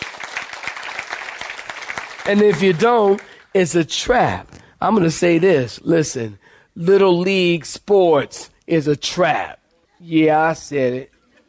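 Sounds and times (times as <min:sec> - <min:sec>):
audience clapping hands: 0:00.0 - 0:03.5
speech: 0:02.3 - 0:11.1.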